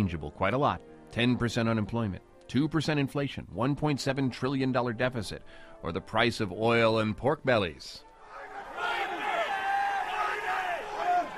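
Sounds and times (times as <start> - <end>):
speech: 0.0 - 8.1
traders shouting in a futures trading pit: 8.2 - 11.3.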